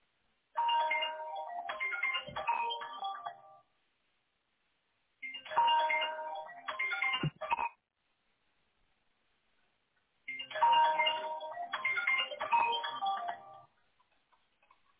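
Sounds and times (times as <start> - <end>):
mobile phone ringtone: 0.6 - 3.6, 5.2 - 7.8, 10.3 - 13.7.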